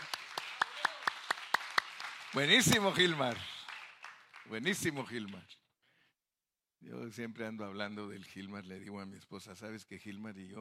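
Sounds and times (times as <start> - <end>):
audience clapping hands: 0.0 - 5.5
speech: 2.3 - 3.5, 4.5 - 5.6, 6.8 - 10.6.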